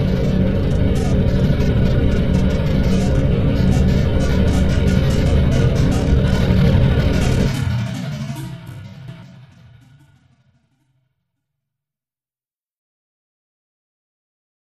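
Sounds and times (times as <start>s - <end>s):
light active machinery: 0.0s - 10.1s.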